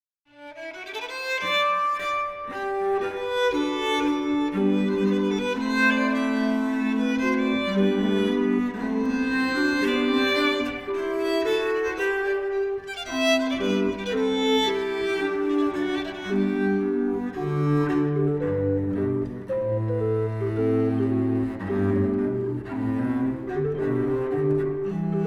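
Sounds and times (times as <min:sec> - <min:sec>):
solo violin: 0:00.3 - 0:25.2.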